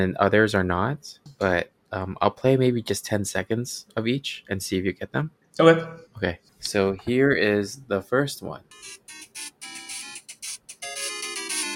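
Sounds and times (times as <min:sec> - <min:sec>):
speech: 0:00.0 - 0:09.8
retro video game tune: 0:08.7 - 0:11.7.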